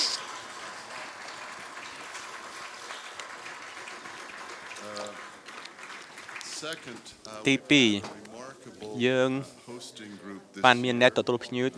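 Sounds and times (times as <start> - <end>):
audience clapping for students at a gathering: 0.0 - 7.1
speech: 6.6 - 8.2, 8.9 - 11.7.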